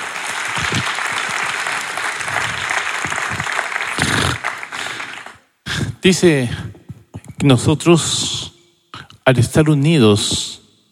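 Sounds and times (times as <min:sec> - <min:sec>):
audience applause: 0:00.0 - 0:05.5
speech: 0:06.0 - 0:06.7, 0:07.4 - 0:08.4, 0:09.3 - 0:10.4.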